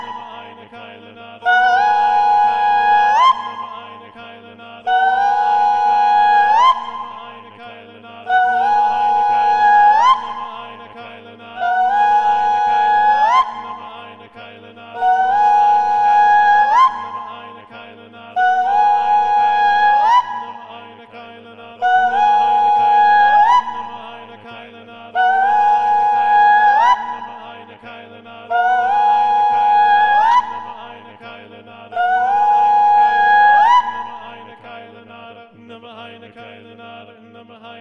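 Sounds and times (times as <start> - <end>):
SATB choir singing: 0.0 - 37.7.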